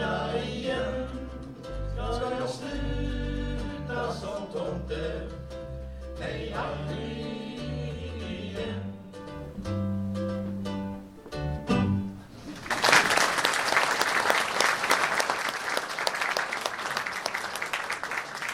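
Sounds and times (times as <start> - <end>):
music with singing at a live show: 0.0 - 12.1
speech: 6.2 - 7.9
audience applause at a live show: 12.2 - 18.5.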